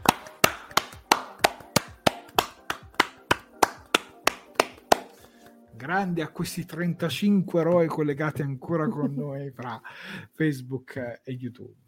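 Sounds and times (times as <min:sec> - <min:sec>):
applause, hands clapping: 0:00.0 - 0:05.6, 0:06.5 - 0:06.9
speech: 0:05.8 - 0:11.8.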